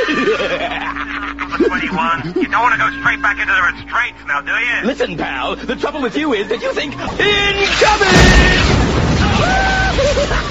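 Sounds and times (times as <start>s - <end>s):
laughter: 0.0s - 3.5s, 5.4s - 7.2s, 9.6s - 10.5s
speech: 1.6s - 10.5s
tank round exploding inside a cell: 7.1s - 10.5s.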